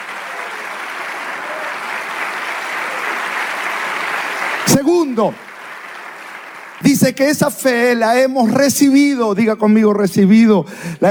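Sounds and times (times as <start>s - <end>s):
audience applause: 0.0s - 7.8s
speech: 4.8s - 5.4s, 6.8s - 11.0s.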